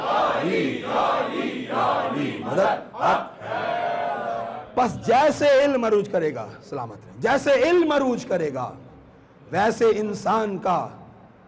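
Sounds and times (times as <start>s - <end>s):
crowd shouting a religious slogan in unison: 0.0s - 4.8s
speech: 0.4s - 3.4s, 4.8s - 8.8s, 9.5s - 11.0s.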